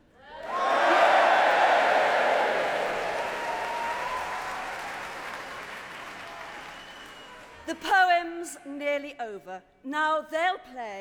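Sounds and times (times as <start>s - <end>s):
audience cheering: 0.3s - 7.6s
speech: 7.7s - 11.0s.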